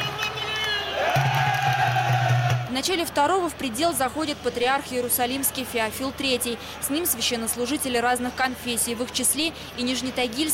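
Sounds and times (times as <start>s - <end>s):
crowd of Orthodox Arabs shouting at a traditional ceremony in a Jerusalem church: 0.0s - 3.0s
speech: 2.8s - 10.5s.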